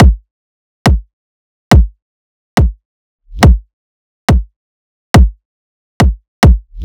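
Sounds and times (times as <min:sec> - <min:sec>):
riddim kick drum loop: 0:00.0 - 0:00.2, 0:00.9 - 0:01.1, 0:01.7 - 0:02.0, 0:02.6 - 0:03.6, 0:04.3 - 0:04.5, 0:05.2 - 0:05.4, 0:06.0 - 0:06.8.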